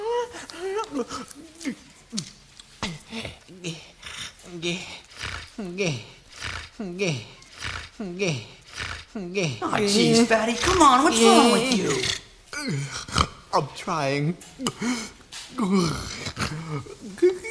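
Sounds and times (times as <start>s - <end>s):
heavy breathing: 0.0s - 2.1s, 2.8s - 9.6s, 14.7s - 17.0s
speech: 0.9s - 2.3s, 4.6s - 4.9s, 5.8s - 6.1s, 7.0s - 7.3s, 8.2s - 8.5s, 9.4s - 12.9s, 13.8s - 16.9s.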